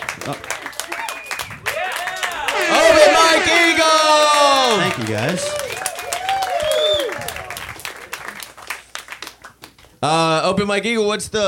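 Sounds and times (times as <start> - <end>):
crowd cheering: 0.0 - 9.4
scattered clapping: 0.0 - 10.0
speech: 0.2 - 0.6, 3.7 - 5.6, 10.0 - 11.4
many voices yelling and whooping: 1.7 - 7.4.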